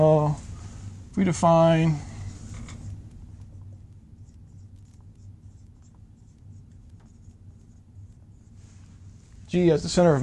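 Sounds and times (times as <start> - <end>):
speech: 0.0 - 0.4, 1.2 - 2.1, 9.5 - 10.2
low hum: 0.0 - 10.2
handwriting scratching during a mechanics lecture: 4.2 - 8.6.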